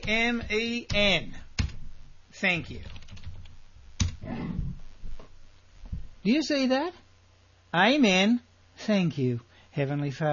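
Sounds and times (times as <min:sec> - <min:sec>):
speech: 0:00.0 - 0:01.4, 0:02.3 - 0:03.0, 0:06.2 - 0:07.0, 0:07.7 - 0:10.3
typing on a computer keyboard: 0:02.8 - 0:04.2.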